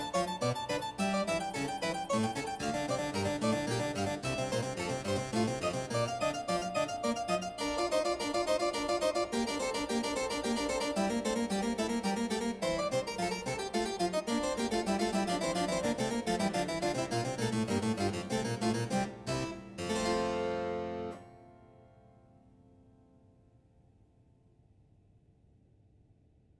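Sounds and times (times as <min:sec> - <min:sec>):
claviorganum invention: 0:00.0 - 0:21.2.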